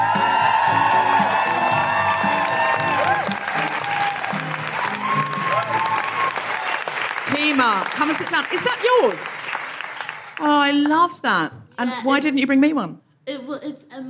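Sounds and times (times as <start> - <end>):
audience whooping and shouting at a live comedy show at the Edinburgh Fringe: 0.0 - 7.2
audience clapping at a live comedy show at the Edinburgh Fringe: 0.0 - 11.1
speech: 7.7 - 9.5, 10.4 - 14.0.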